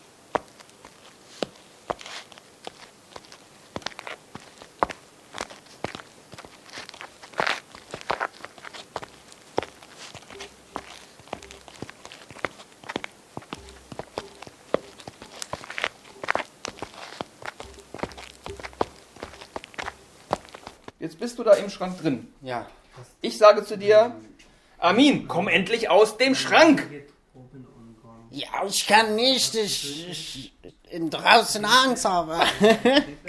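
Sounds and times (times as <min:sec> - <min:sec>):
person walking: 0:00.0 - 0:21.0
speech: 0:21.1 - 0:27.1, 0:28.6 - 0:33.1.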